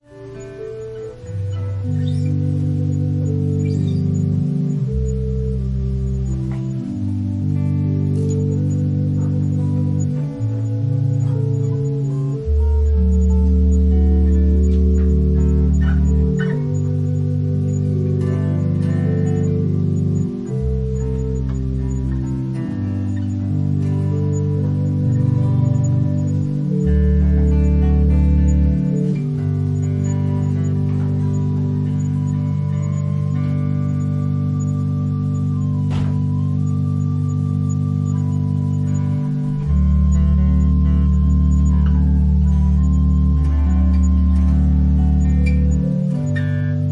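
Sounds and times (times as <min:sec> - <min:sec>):
organ prelude: 0:00.0 - 0:46.9.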